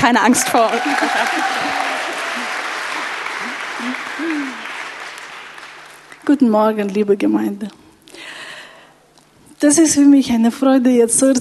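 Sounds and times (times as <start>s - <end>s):
speech: 0.0s - 1.8s, 3.8s - 4.6s, 6.3s - 8.4s, 9.6s - 11.3s
audience applause: 0.0s - 6.3s.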